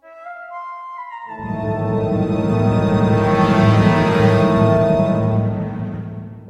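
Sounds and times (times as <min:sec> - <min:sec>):
music sting: 0:01.3 - 0:06.4.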